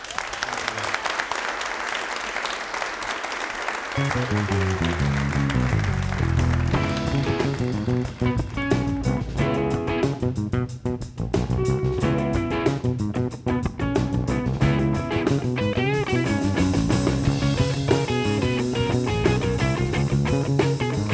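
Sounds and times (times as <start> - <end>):
audience applause for the band: 0.0 - 9.0
band playing: 3.9 - 21.1.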